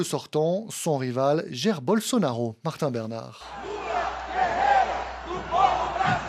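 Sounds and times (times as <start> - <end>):
speech: 0.0 - 3.8
thousands of Lula supporters chanting at a São Paulo rally outside a football stadium: 3.5 - 6.2.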